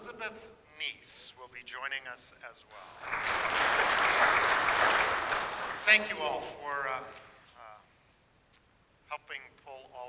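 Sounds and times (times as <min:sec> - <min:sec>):
speech: 0:00.1 - 0:07.3, 0:09.1 - 0:10.0
audience clapping: 0:02.7 - 0:06.5.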